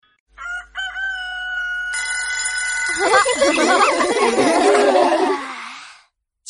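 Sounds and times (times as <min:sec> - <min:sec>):
rooster crowing: 0:00.3 - 0:02.1
laughter: 0:02.9 - 0:06.0.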